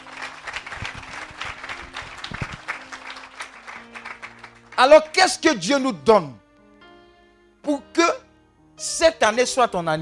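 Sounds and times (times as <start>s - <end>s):
church congregation applauding: 0.0s - 5.4s
speech: 4.8s - 6.4s, 9.0s - 10.0s.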